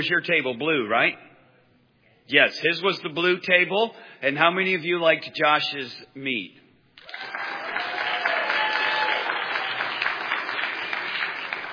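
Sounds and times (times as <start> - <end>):
speech: 0.0 - 1.3, 2.3 - 7.4
audience clapping: 7.0 - 11.7.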